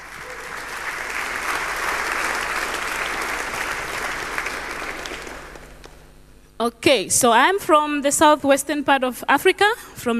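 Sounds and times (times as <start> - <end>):
audience applause: 0.0 - 6.0
speech: 6.6 - 10.1.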